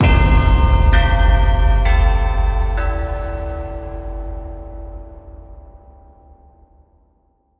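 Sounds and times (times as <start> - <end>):
singing bells: 0.0 - 6.5.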